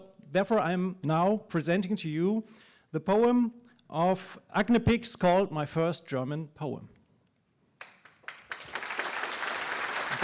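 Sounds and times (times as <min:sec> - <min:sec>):
speech: 0:00.3 - 0:07.0
audience applause for a poet at a reading: 0:07.8 - 0:10.2.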